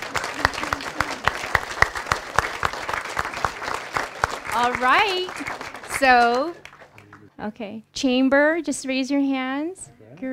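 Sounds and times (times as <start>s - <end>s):
audience applause: 0.0s - 7.3s
speech: 4.6s - 6.6s, 7.4s - 10.3s.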